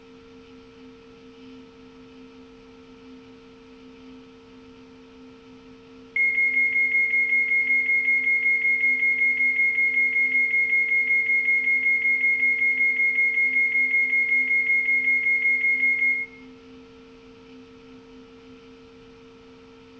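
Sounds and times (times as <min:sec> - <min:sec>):
novelty night alarm: 0:06.2 - 0:16.4.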